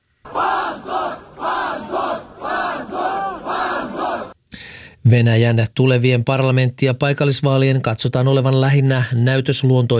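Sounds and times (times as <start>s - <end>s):
crowd shouting shame chants outside courthouse: 0.2s - 4.4s
speech: 5.1s - 9.9s.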